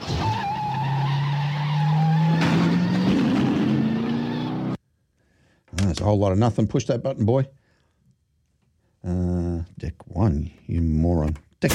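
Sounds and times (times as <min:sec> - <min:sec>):
Dodge car engine droning with climbing pitch: 0:00.0 - 0:04.8
hissing screech of skidding tyres: 0:00.0 - 0:04.8
speech: 0:06.0 - 0:07.6, 0:09.0 - 0:11.7.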